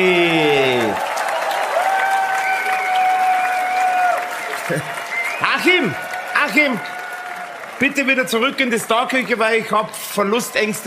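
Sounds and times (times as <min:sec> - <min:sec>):
audience applause: 0:00.0 - 0:10.8
speech: 0:04.7 - 0:05.0, 0:05.6 - 0:07.0, 0:07.8 - 0:10.8.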